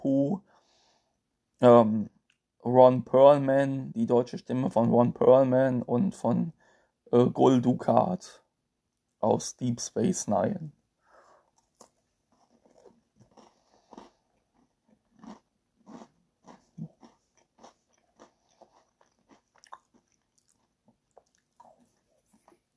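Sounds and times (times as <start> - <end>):
speech: 1.6 - 8.4, 9.2 - 10.8
biting and chewing a cookie: 11.4 - 22.7.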